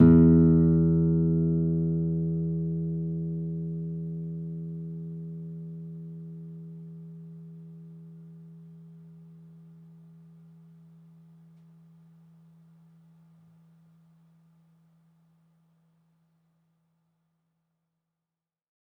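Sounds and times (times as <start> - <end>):
classical guitar: 0.0 - 9.0.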